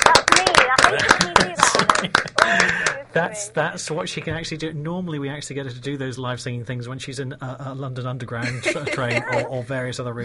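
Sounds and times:
audience handclaps for a performer: 0.0s - 3.0s
laughter: 0.9s - 3.1s, 8.4s - 9.7s
speech: 3.1s - 10.2s.

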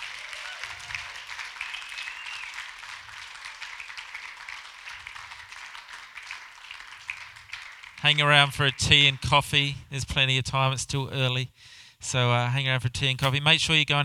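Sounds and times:
audience clapping: 0.0s - 9.3s
speech: 8.1s - 14.0s.

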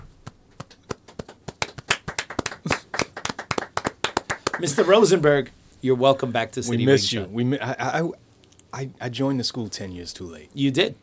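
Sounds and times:
hands clapping: 0.0s - 5.2s
speech: 4.6s - 11.0s.

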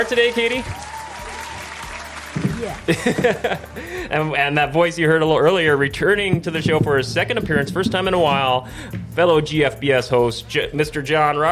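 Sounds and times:
speech: 0.0s - 0.9s, 2.6s - 11.5s
applause: 0.0s - 3.5s
laughter: 2.4s - 4.3s
low thump: 6.0s - 10.1s.

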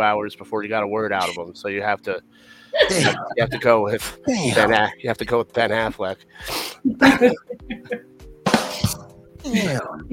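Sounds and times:
speech: 0.0s - 8.2s, 8.8s - 10.1s
person coughing: 2.8s - 3.7s, 4.3s - 4.8s, 6.9s - 7.8s, 8.7s - 10.1s
laughter: 2.8s - 4.9s, 6.8s - 8.1s, 9.5s - 10.1s.

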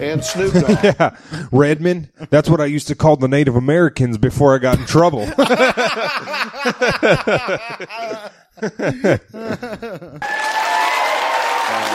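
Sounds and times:
laughter: 0.0s - 1.3s, 5.1s - 10.5s
speech: 0.0s - 10.6s
audience applause and cheering: 10.2s - 11.9s.

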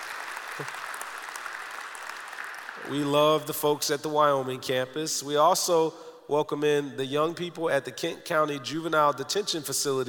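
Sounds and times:
church congregation applause welcoming the Wyoming campus: 0.0s - 3.6s
speech: 0.6s - 0.8s, 2.8s - 10.0s.

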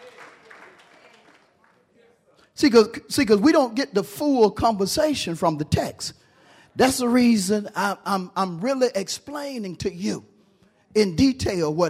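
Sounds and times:
audience clapping: 0.0s - 2.1s
speech: 2.6s - 6.2s, 6.8s - 10.3s, 10.9s - 11.8s.

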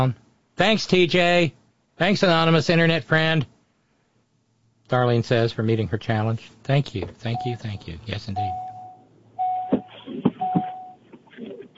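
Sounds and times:
speech: 0.0s - 3.5s, 4.9s - 8.6s
car door chime: 8.4s - 11.0s.

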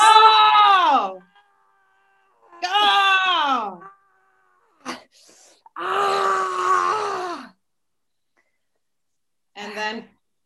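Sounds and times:
woman screaming in rage during a rage-release training session: 0.0s - 1.4s, 2.4s - 4.9s, 5.8s - 7.5s.

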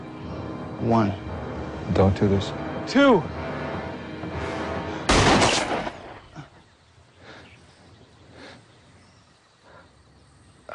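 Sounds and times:
speech: 0.8s - 1.3s, 1.9s - 3.4s
gunshots in a drama scene: 5.1s - 6.3s.

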